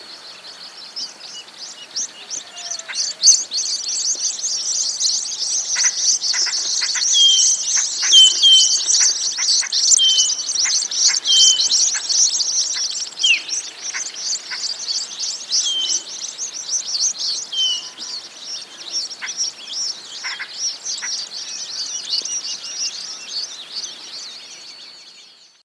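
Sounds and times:
high-pitched bird twittering chorus: 0:00.0 - 0:25.6.

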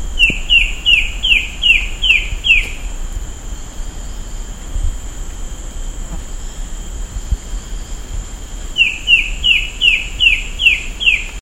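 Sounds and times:
steady high hum: 0:00.0 - 0:11.4
bird calling down-slurred chirps: 0:00.1 - 0:04.6, 0:08.7 - 0:11.4.

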